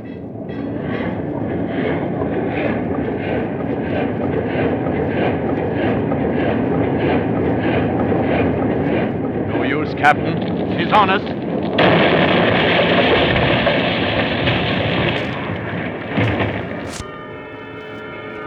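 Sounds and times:
ship engines running full steam astern: 0:00.0 - 0:18.4
speech: 0:10.0 - 0:11.4.

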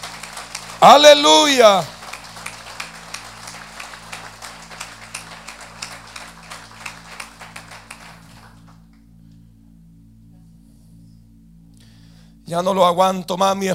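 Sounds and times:
audience applause: 0:00.0 - 0:08.8
speech: 0:00.8 - 0:01.9, 0:12.5 - 0:13.7.

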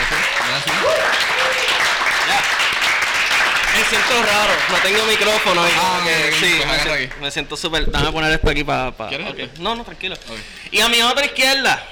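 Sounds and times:
audience applause: 0:00.0 - 0:07.3
speech: 0:03.9 - 0:11.9.

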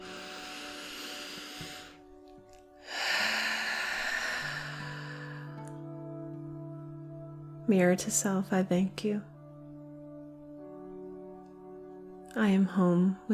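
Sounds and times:
deep in-breath during a calm spoken affirmation: 0:00.0 - 0:02.0, 0:02.8 - 0:05.7
quiet steady musical drone: 0:00.0 - 0:13.3
speech: 0:07.7 - 0:09.3, 0:12.4 - 0:13.3.

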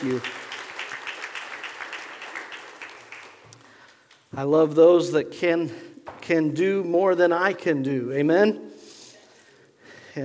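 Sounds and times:
speech: 0:00.0 - 0:00.4, 0:04.3 - 0:08.7
audience applause: 0:00.0 - 0:04.2.

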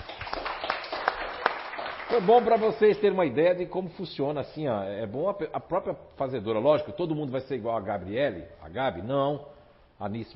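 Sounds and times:
applause from small group: 0:00.0 - 0:03.1
speech: 0:02.1 - 0:10.3.

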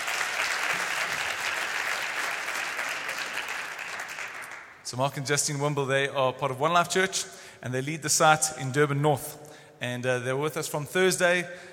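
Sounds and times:
audience applause: 0:00.0 - 0:04.8
speech: 0:04.9 - 0:11.7.

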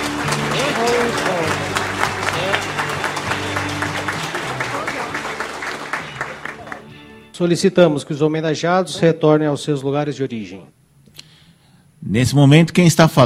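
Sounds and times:
audience applause: 0:00.0 - 0:07.2
speech: 0:07.4 - 0:10.8, 0:12.0 - 0:13.2.

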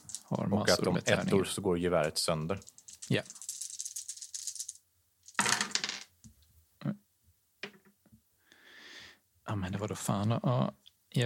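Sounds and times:
dice being rolled: 0:00.0 - 0:00.8, 0:02.0 - 0:06.4, 0:07.6 - 0:08.0
speech: 0:00.3 - 0:03.4, 0:09.5 - 0:11.2.

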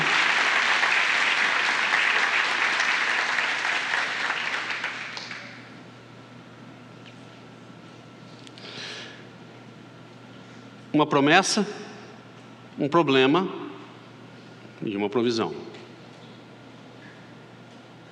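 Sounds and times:
audience applauding: 0:00.0 - 0:05.7
speech: 0:11.0 - 0:11.8, 0:12.8 - 0:13.6, 0:14.8 - 0:15.8.

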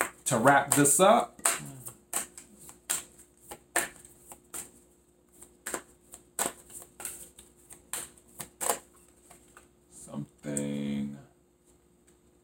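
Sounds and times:
Super Attractor oracle deck cards drawn and handled during a tarot reading: 0:00.0 - 0:09.7
speech: 0:00.3 - 0:01.7.

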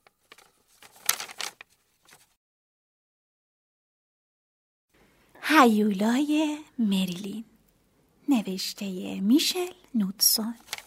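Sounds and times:
paper rustling as a book is opened and pages turned: 0:00.0 - 0:02.4, 0:10.4 - 0:10.8
speech: 0:05.5 - 0:07.5, 0:08.3 - 0:10.8.

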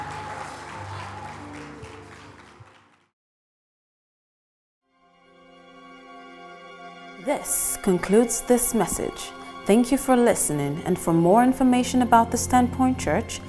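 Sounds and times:
audience clapping hands: 0:00.0 - 0:03.1
speech: 0:07.2 - 0:13.4.

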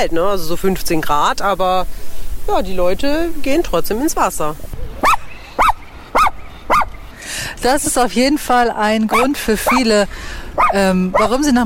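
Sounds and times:
speech: 0:00.0 - 0:05.2, 0:07.6 - 0:11.6
faint hiss: 0:00.0 - 0:08.3
dog barking: 0:05.0 - 0:06.9, 0:09.1 - 0:09.9, 0:10.6 - 0:11.4.

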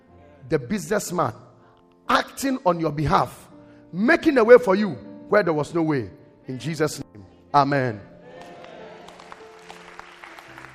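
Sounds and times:
speech: 0:00.5 - 0:01.5, 0:02.1 - 0:08.1
audience clapping hands: 0:08.3 - 0:10.7.

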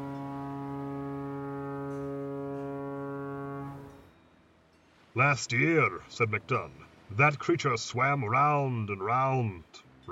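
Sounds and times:
foghorn blowing: 0:00.0 - 0:04.1
speech: 0:05.2 - 0:10.0.

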